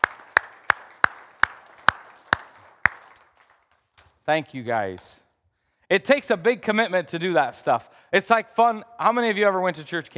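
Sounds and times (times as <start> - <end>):
audience round of applause: 0.0 - 3.8
speech: 4.3 - 5.2, 5.9 - 10.1.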